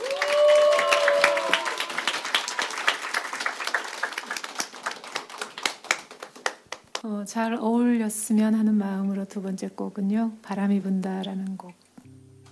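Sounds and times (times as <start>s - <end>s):
whoops and cheers: 0.0s - 3.0s
audience applause: 0.0s - 6.9s
speech: 7.0s - 11.8s.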